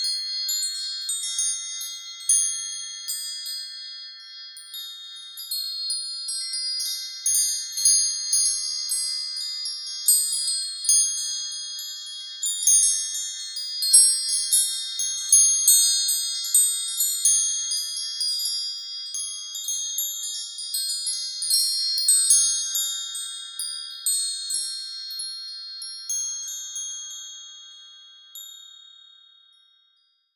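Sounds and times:
small metal household wind chime: 0.0 - 30.3.

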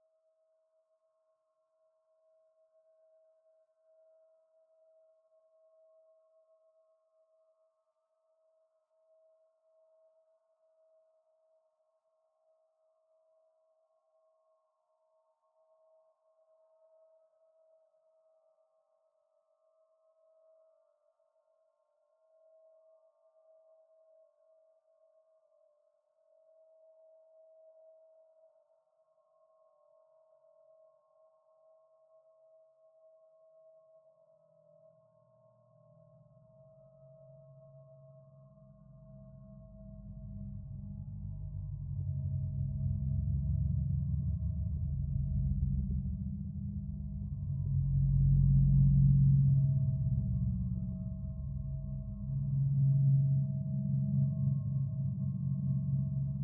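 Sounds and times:
simple abstract eerie sci-fi drone: 36.0 - 56.4.

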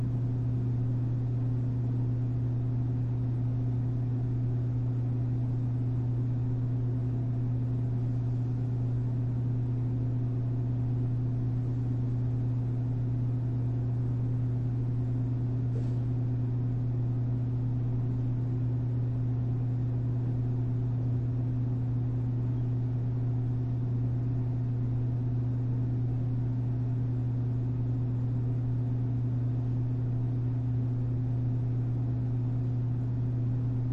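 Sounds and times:
quiet vending machine hum in a school hallway: 0.0 - 33.9.

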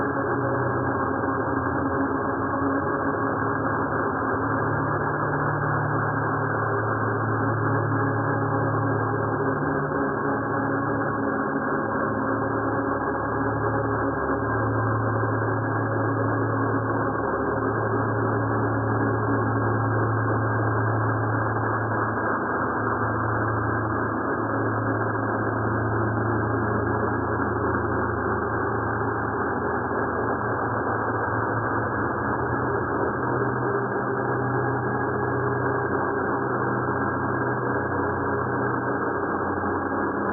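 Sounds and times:
dark ambient drone: 0.0 - 40.3.

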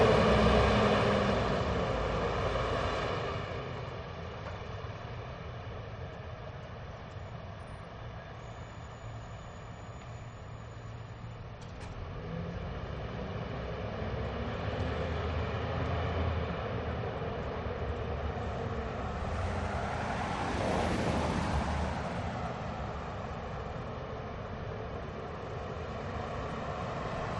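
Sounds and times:
traffic cars passing by in Aspen Colorado USA: 0.0 - 5.7, 11.8 - 27.3
bus passing by in Aspen Colorado USA: 0.0 - 27.3.

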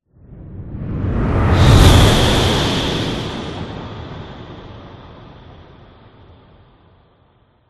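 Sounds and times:
whoosh: 0.6 - 4.8.

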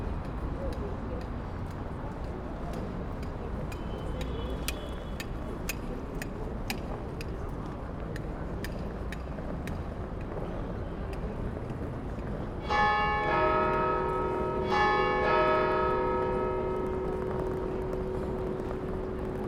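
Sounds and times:
distant traffic in Lausanne city: 0.0 - 19.4
bell in Lausanne city: 12.6 - 19.4.

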